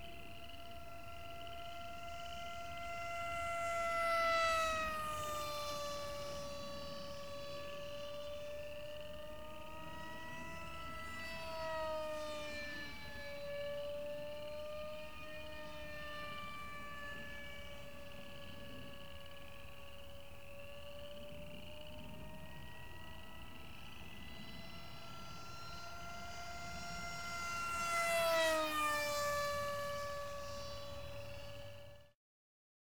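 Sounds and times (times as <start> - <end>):
Skyfun model aircraft flybys: 0.0 - 32.2.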